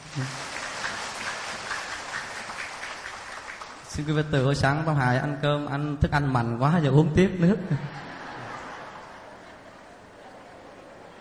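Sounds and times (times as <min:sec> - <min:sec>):
applause: 0:00.0 - 0:04.2
speech: 0:00.2 - 0:00.4, 0:04.0 - 0:08.1
laughter: 0:07.7 - 0:11.2.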